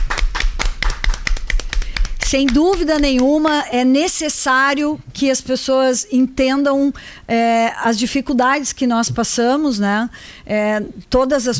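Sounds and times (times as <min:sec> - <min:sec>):
people applauding health workers: 0:00.0 - 0:03.4
speech: 0:02.3 - 0:11.5.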